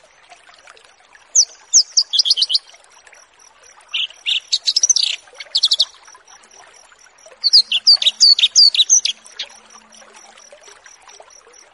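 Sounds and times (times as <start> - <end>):
bush lark song: 1.4 - 2.7, 3.9 - 11.7.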